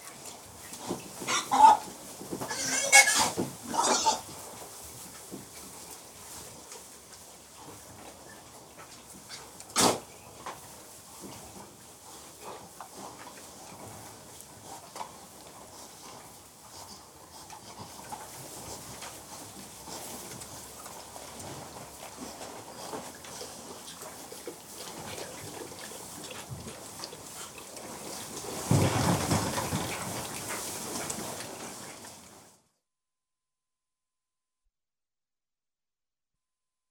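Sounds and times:
domestic pigs grunting and snorting while being fed: 0.0 - 4.5, 11.3 - 32.3.

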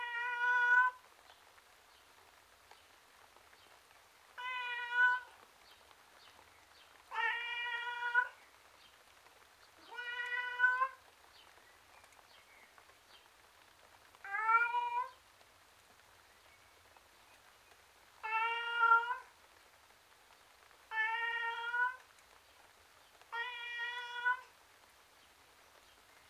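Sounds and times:
male tom cat meowing miserably outdoors: 0.0 - 1.0, 4.4 - 5.4, 7.1 - 8.4, 9.8 - 11.0, 14.2 - 15.2, 18.2 - 19.3, 20.9 - 22.0, 23.3 - 24.5.

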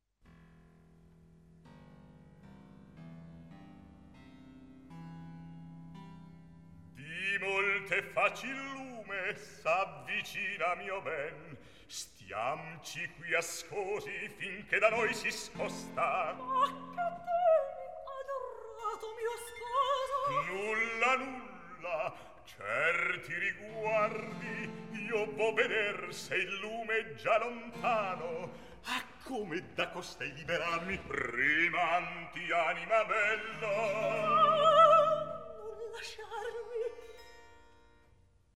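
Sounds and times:
recitative singing: 7.0 - 37.1.

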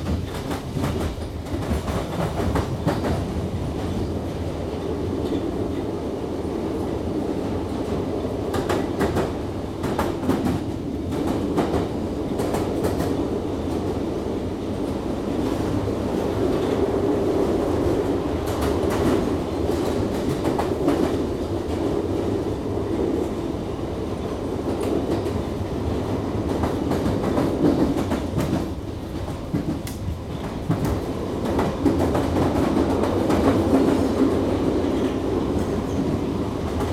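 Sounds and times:
London Underground trains: 0.0 - 36.9.

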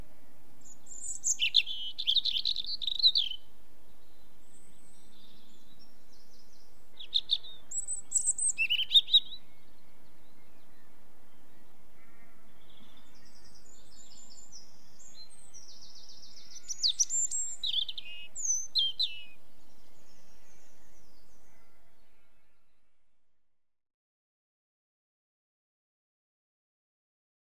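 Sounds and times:
British European robin singing: 0.0 - 23.0.

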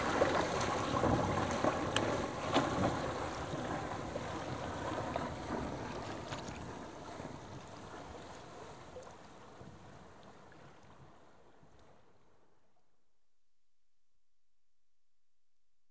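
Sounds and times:
ship sailing past right to left: 0.0 - 10.0.

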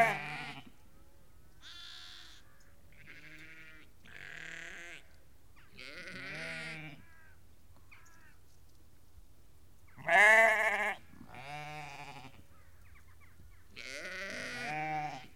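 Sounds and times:
flock of ewes and lambs bleating: 0.0 - 0.8, 1.6 - 7.4, 10.0 - 12.5, 13.7 - 15.3.

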